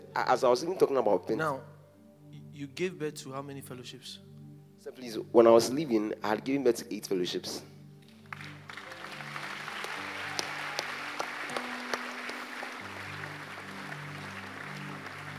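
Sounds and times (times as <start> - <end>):
speech: 0.2 - 1.7, 2.6 - 7.7
audience clapping: 8.0 - 15.3.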